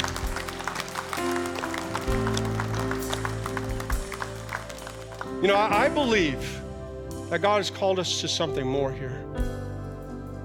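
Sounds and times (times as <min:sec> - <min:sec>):
audience hand clapping: 0:00.0 - 0:05.9
sustained low musical tones: 0:00.0 - 0:10.4
speech: 0:05.4 - 0:06.6, 0:07.3 - 0:09.5.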